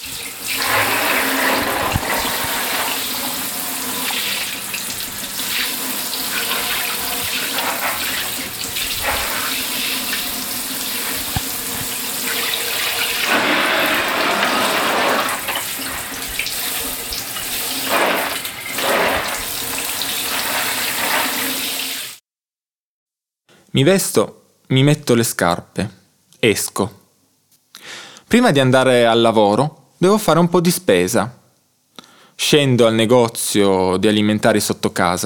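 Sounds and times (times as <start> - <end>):
shower running water: 0.0 - 22.2
speech: 23.8 - 27.0, 28.3 - 31.4, 32.4 - 35.2.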